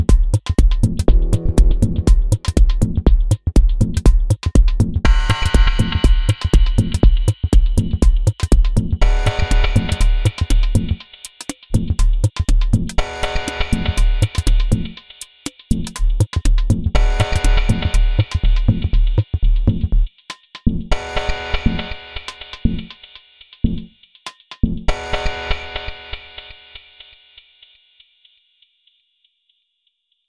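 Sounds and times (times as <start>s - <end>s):
dub music: 0.0s - 11.0s, 11.8s - 15.0s, 15.7s - 23.0s.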